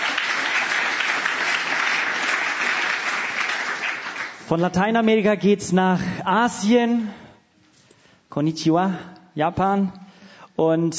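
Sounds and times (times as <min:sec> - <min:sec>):
audience clapping: 0:00.0 - 0:04.8
speech: 0:04.5 - 0:07.2, 0:08.3 - 0:10.0, 0:10.6 - 0:10.9.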